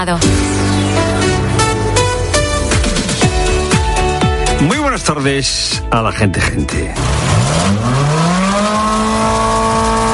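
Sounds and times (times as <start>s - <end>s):
speech: 0.0s - 1.3s, 5.0s - 8.2s
Ferrari Roma sports car engine accelerating hard: 0.3s - 4.0s, 7.0s - 10.1s.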